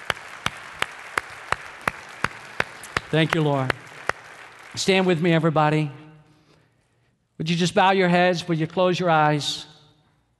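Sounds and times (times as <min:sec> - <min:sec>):
audience clapping hands in unison: 0:00.0 - 0:05.8
speech: 0:03.1 - 0:03.8, 0:04.7 - 0:06.0, 0:07.4 - 0:09.7.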